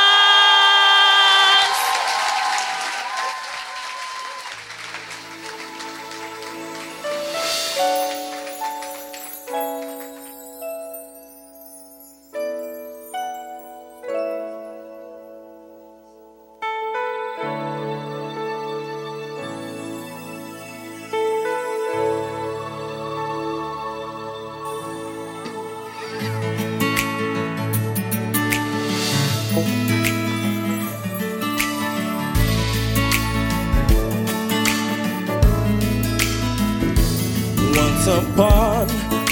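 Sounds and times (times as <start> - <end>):
audience clapping welcoming a performing group: 0.0 - 10.7
sustained tuneful music: 4.7 - 39.2.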